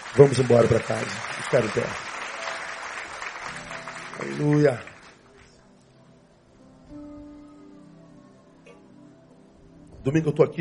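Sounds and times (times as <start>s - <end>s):
audience applause: 0.0s - 5.4s
speech: 0.1s - 2.1s, 4.2s - 4.9s, 10.0s - 10.5s.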